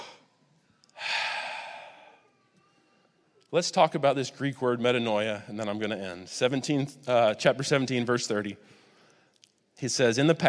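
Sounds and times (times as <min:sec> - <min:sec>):
deep breath during a church sermon: 0:00.0 - 0:03.3, 0:08.6 - 0:09.4
speech: 0:03.5 - 0:08.8, 0:09.8 - 0:10.4.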